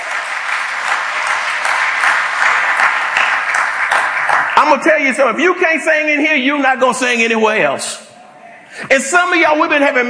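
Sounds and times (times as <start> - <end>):
church congregation clapping hands in praise for the choir singers: 0.0 - 6.0
speech: 4.6 - 8.0, 8.8 - 10.0.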